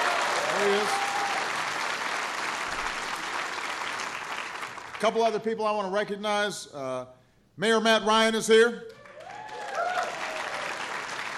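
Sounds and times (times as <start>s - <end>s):
audience applause: 0.0s - 5.0s, 9.0s - 11.3s
speech: 5.0s - 9.0s.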